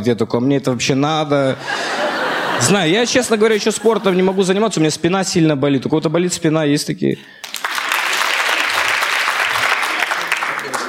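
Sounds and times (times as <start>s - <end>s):
speech: 0.0s - 2.0s, 2.6s - 7.6s
laughter: 1.5s - 4.9s
audience applause: 7.4s - 10.8s.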